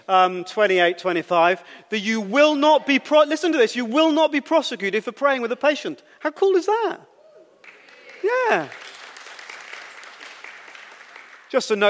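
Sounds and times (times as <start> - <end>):
speech: 0.1 - 7.1, 8.2 - 8.8, 11.5 - 11.8
spontaneous audience applause: 7.6 - 11.8.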